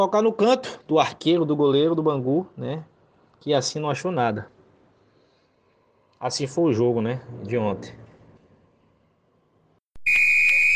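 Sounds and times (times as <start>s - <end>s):
speech: 0.0s - 4.6s, 6.2s - 8.0s
final whistle sound effect: 10.0s - 10.7s.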